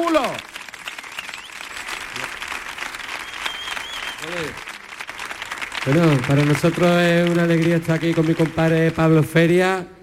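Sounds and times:
loud audience applause: 0:00.0 - 0:09.3
speech: 0:05.8 - 0:10.0.

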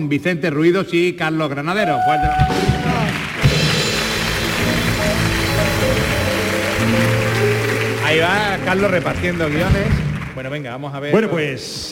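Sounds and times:
speech: 0:00.0 - 0:03.2, 0:08.1 - 0:11.9
audience applause: 0:01.9 - 0:10.8.

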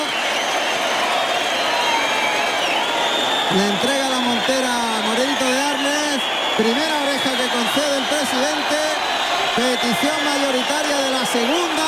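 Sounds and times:
bullring crowd ovation: 0:00.0 - 0:11.8
speech: 0:03.5 - 0:04.7, 0:06.6 - 0:07.0, 0:09.6 - 0:11.8.

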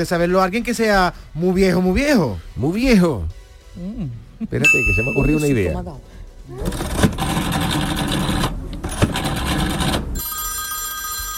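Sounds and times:
speech: 0:00.0 - 0:07.1
rotary telephone dial spun, buzzing clicking whir: 0:06.7 - 0:11.3
steady high electronic ringing tone: 0:10.2 - 0:11.3.

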